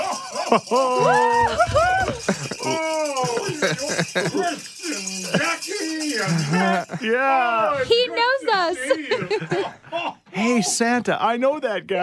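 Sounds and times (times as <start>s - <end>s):
bells ringing: 0.0s - 7.2s
laughter: 0.0s - 10.7s
speech: 0.5s - 12.0s.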